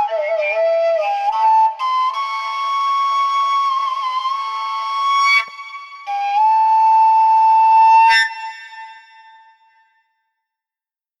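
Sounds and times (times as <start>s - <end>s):
long overtone note on a low A koncovka fingerhole-less flute: 0.0s - 9.6s.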